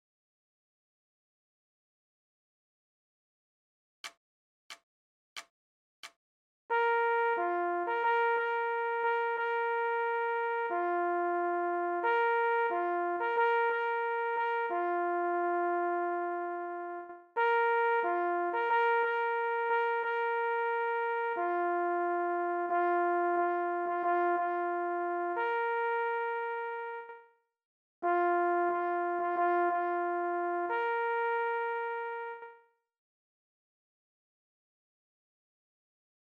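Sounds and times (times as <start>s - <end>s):
leggiero signal horn: 6.7s - 27.3s, 28.0s - 32.7s.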